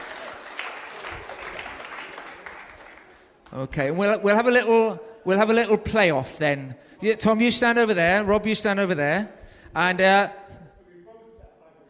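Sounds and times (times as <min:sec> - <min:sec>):
audience applause: 0:00.0 - 0:03.5
speech: 0:03.5 - 0:10.5.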